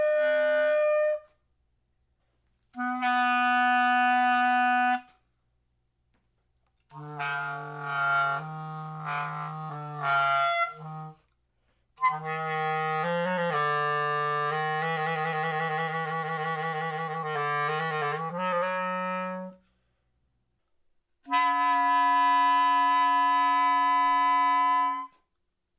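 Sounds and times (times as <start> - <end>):
clarinet multiphonics: 0.0 - 1.4, 2.7 - 5.3, 6.9 - 11.4, 12.0 - 19.7, 21.2 - 25.4.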